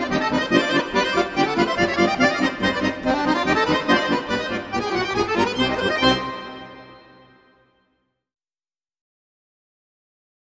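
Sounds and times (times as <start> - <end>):
polka music: 0.0 - 7.6.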